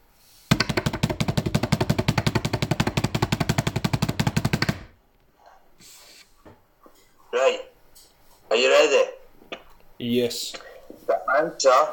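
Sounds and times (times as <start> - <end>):
drum roll: 0.5 - 5.0
speech: 8.5 - 9.2, 10.0 - 11.9.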